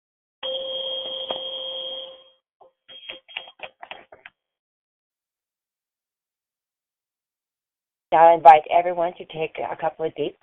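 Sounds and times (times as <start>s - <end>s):
5.2 hertz meditation chime: 0.4s - 3.3s
speech: 8.1s - 10.4s.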